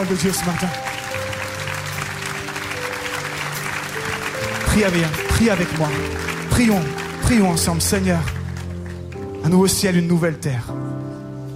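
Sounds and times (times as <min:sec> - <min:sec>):
speech: 0:00.0 - 0:01.0, 0:04.8 - 0:08.4, 0:09.4 - 0:11.0
audience applauding: 0:00.0 - 0:09.9.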